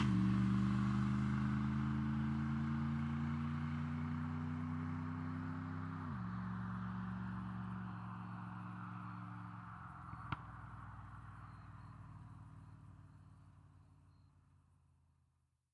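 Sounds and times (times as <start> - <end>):
1982 Z28 driving away fast: 0.0 - 11.8.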